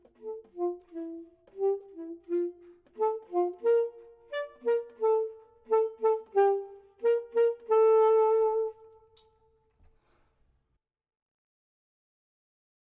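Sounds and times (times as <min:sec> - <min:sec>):
saxophone: 0:00.0 - 0:09.4
clarinet: 0:00.0 - 0:09.5.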